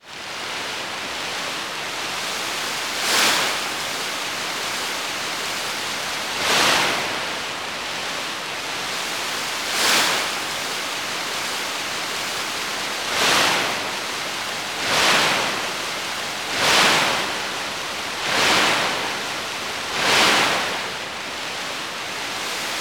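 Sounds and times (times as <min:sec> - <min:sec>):
sea waves on a shore: 0:00.0 - 0:22.7.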